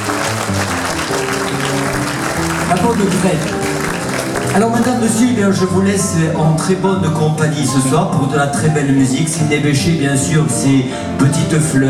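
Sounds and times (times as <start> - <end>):
concert audience applause greeting the musicians: 0.0 - 5.2
speech: 2.8 - 3.6, 4.5 - 11.8.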